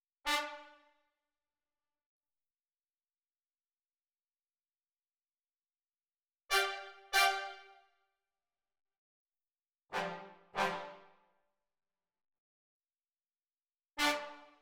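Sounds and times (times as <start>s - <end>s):
brass instruments: 0.3s - 0.8s, 6.5s - 7.6s, 9.9s - 11.1s, 14.0s - 14.6s.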